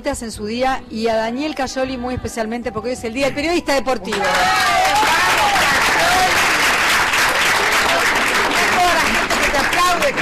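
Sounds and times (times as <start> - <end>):
speech: 0.0 - 4.8
student audience clapping: 4.1 - 10.2.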